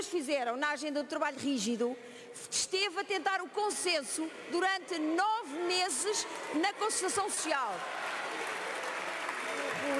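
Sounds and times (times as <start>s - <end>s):
speech: 0.1s - 8.1s
applause in parliament: 5.9s - 9.9s.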